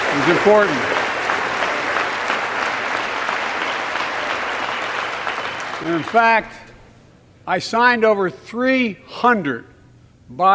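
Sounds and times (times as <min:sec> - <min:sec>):
audience applause: 0:00.0 - 0:06.4
speech: 0:00.2 - 0:00.9, 0:05.8 - 0:06.6, 0:07.5 - 0:09.7, 0:10.3 - 0:10.5.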